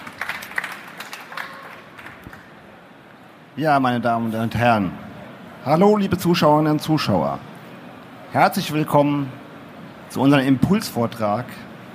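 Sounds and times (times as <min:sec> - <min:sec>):
small round of applause: 0:00.0 - 0:02.7
speech: 0:03.6 - 0:05.0, 0:05.6 - 0:07.5, 0:08.3 - 0:09.4, 0:10.1 - 0:11.7.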